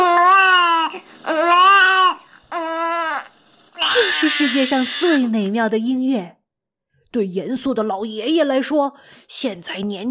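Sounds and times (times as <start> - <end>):
newborn baby's first cry: 0.0 - 5.6
speech: 4.2 - 6.4, 7.1 - 10.0.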